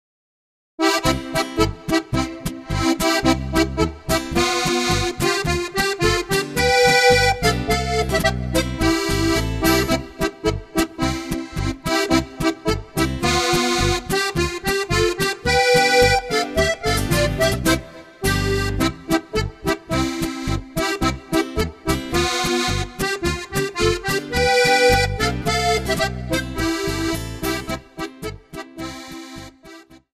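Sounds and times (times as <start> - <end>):
polka music: 0.8 - 30.1.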